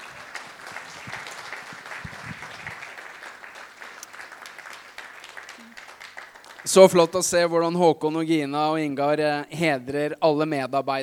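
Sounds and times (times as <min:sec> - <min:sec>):
audience applause: 0:00.0 - 0:07.2
speech: 0:06.6 - 0:11.0.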